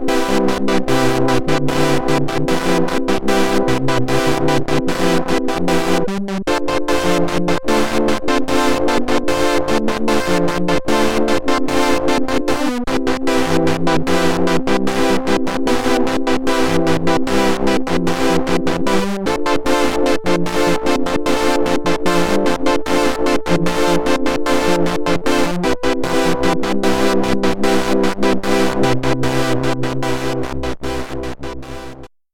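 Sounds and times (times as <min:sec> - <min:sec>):
polyphonic SID chip synth: 0:00.0 - 0:32.1.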